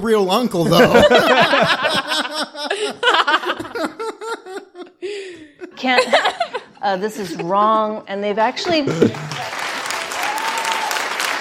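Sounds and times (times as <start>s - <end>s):
speech: 0.0s - 3.9s, 5.8s - 9.5s
laughter: 0.6s - 7.8s, 8.6s - 9.6s
crowd clapping: 8.6s - 11.3s.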